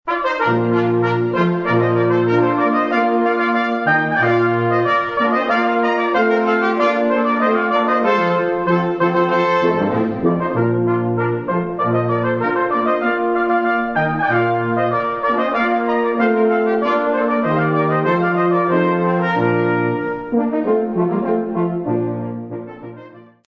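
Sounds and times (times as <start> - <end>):
brass playing a rondeau: 0.0 - 23.4.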